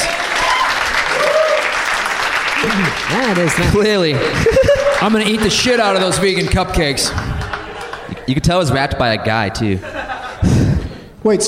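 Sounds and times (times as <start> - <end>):
laughter: 0.0 - 2.5, 5.4 - 11.4
audience applause: 0.0 - 9.2
speech: 2.7 - 7.3, 8.3 - 10.6, 11.2 - 11.4.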